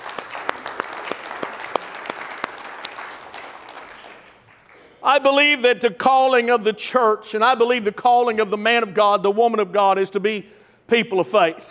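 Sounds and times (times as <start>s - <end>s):
audience hand clapping: 0.0s - 5.0s
speech: 5.0s - 11.7s.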